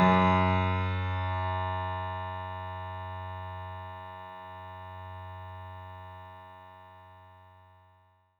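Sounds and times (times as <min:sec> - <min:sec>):
synth note F#2: 0:00.0 - 0:01.7.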